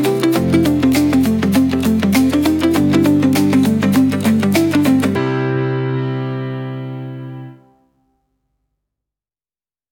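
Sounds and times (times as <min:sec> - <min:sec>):
instrumental guitar arpeggio synth music at 100 bpm: 0:00.0 - 0:07.8.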